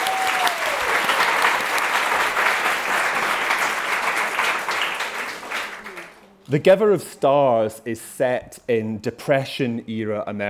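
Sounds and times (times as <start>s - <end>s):
audience round of applause: 0.0s - 6.3s
speech: 6.5s - 10.4s.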